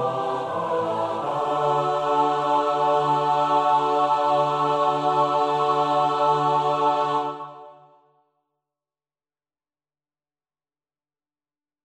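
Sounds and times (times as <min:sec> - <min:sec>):
four-part SATB choir singing a psalm: 0:00.0 - 0:08.0.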